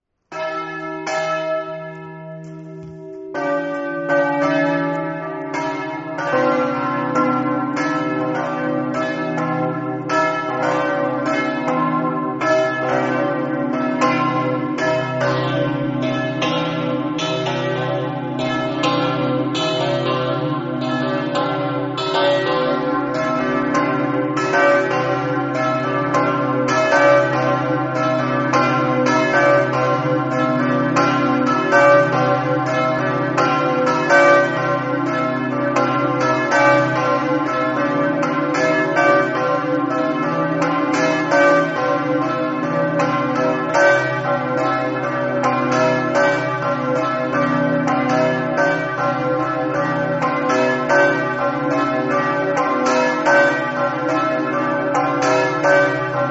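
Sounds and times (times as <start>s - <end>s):
bells ringing: 0.3s - 56.2s.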